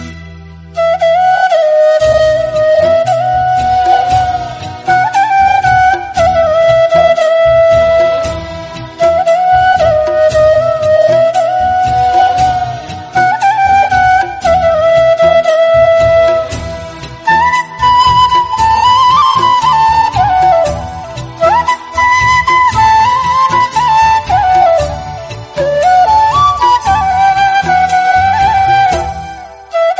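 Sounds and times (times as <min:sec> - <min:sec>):
flute: 0:00.0 - 0:29.9.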